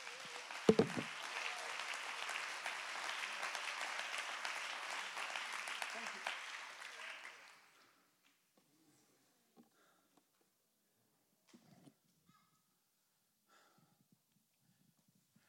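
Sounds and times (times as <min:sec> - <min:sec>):
audience clapping hands: 0:00.0 - 0:08.4.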